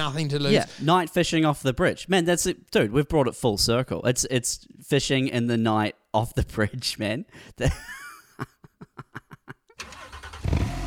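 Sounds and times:
speech: 0.0 - 8.5
laughter: 7.6 - 9.8
BMW Z4 engine cranking and roaring in an advertisement: 9.8 - 10.8.

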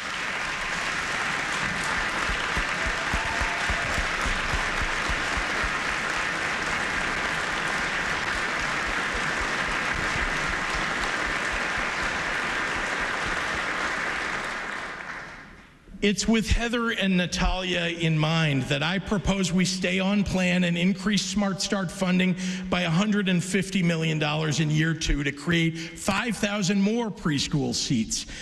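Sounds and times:
large audience applause: 0.0 - 15.6
speech: 16.0 - 28.4.

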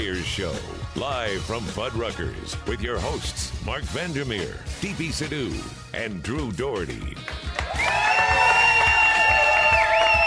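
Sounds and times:
speech: 0.0 - 8.0
crowd cheering and whooping: 7.6 - 10.2.

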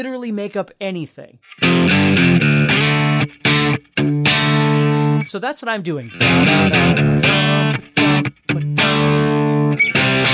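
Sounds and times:
speech: 0.0 - 4.3, 5.2 - 9.1
electric guitar strumming C chord: 1.4 - 5.3, 6.0 - 10.3.

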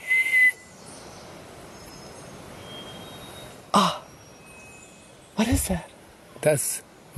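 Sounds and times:
quiet forest hiss: 0.0 - 7.1
bellbird call: 1.7 - 5.0
speech: 5.4 - 7.1.

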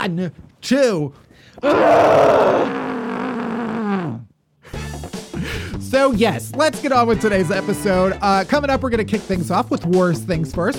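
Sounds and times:
speech: 0.0 - 2.9, 6.0 - 10.7
muffled scream into a pillow: 1.6 - 4.3.

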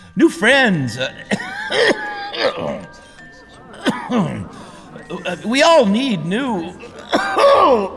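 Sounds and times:
speech: 0.2 - 3.0, 4.1 - 4.5, 5.1 - 7.9
laughter: 0.7 - 7.9
person coughing and clearing throat: 1.2 - 5.3, 6.8 - 7.9.

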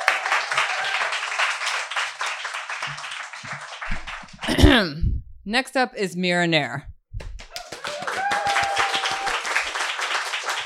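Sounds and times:
audience clapping: 0.0 - 4.8, 7.2 - 10.6
speech: 4.5 - 6.9.

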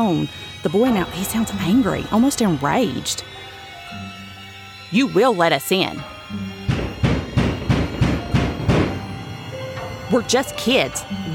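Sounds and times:
speech: 0.0 - 4.2, 4.9 - 6.5, 10.1 - 11.3
loud heavy knocking on a door: 6.6 - 9.2.

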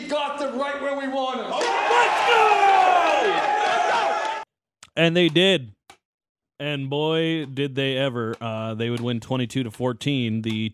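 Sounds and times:
speech: 0.1 - 2.6, 5.0 - 5.8, 6.6 - 10.7
huge stadium crowd of screaming fans: 1.5 - 4.5.

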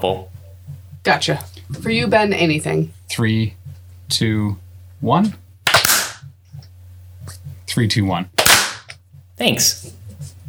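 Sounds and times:
speech: 0.0 - 0.3, 1.0 - 5.4, 7.7 - 8.4, 9.4 - 10.0
low steady hum: 0.0 - 10.4
single sync hand clap: 5.7 - 6.2, 8.4 - 9.0.

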